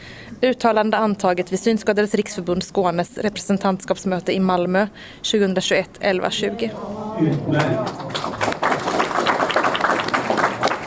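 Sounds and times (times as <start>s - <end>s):
speech: 0.4s - 8.2s
audience applause at a meeting: 7.2s - 10.8s.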